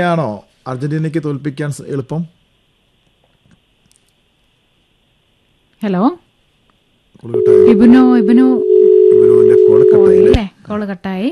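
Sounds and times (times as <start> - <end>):
speech: 0.0 - 2.4, 5.8 - 6.2, 7.2 - 8.7, 9.3 - 11.2
telephone dial tone after a caller's line is cut off: 7.4 - 10.3.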